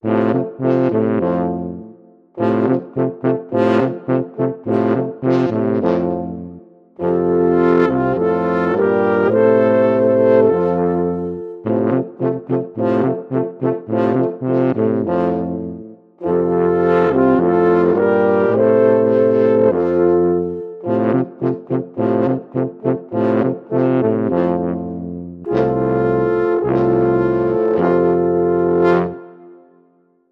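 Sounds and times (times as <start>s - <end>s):
alphorn: 0.0s - 29.5s.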